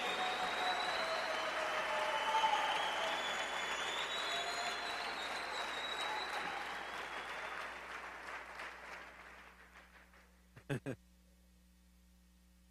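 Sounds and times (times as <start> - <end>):
audience applause: 0.0 - 10.2.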